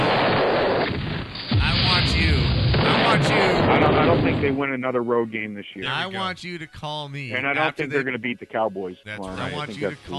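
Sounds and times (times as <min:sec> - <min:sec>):
bomb explosion sound effect: 0:00.0 - 0:04.6
speech: 0:03.2 - 0:10.1.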